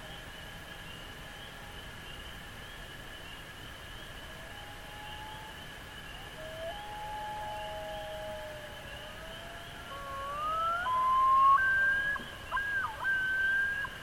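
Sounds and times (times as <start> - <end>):
Common Loon calling: 6.5 - 14.0.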